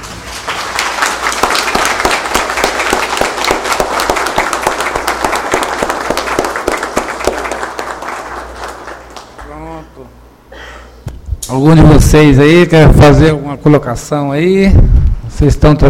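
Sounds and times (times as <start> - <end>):
round of applause: 0.0 - 9.8
speech: 11.5 - 15.8.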